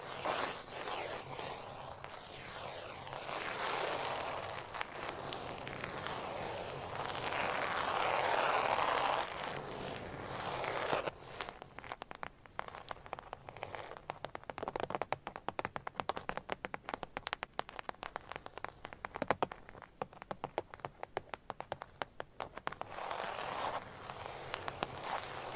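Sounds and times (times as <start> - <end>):
soft brushing scratch: 0.0 - 14.0, 22.7 - 25.5
rapid light taps: 14.1 - 22.9.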